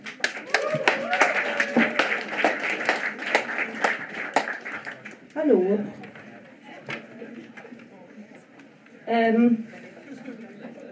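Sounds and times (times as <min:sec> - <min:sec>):
small audience clapping: 0:00.0 - 0:05.5.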